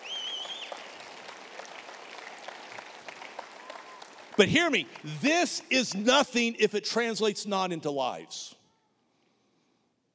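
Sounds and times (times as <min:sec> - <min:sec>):
audience clapping and cheering: 0:00.0 - 0:06.2
speech: 0:04.4 - 0:08.6.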